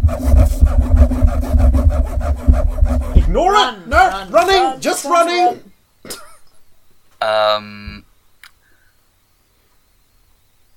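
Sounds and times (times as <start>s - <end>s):
scratching sound through a door: 0.0s - 4.8s
speech: 3.6s - 6.2s, 7.2s - 7.9s.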